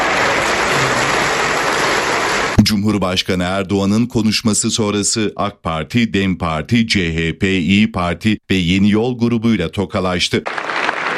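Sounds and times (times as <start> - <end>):
AK Party group applauding in the Turkish parliament: 0.0 - 2.6, 10.4 - 11.1
speech: 2.7 - 10.7.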